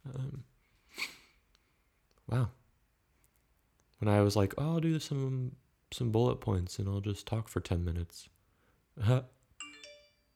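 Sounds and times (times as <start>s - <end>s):
speech: 2.3s - 2.6s, 4.0s - 8.4s, 9.0s - 9.4s
phone notification chime with two quick bright tones: 9.6s - 10.3s.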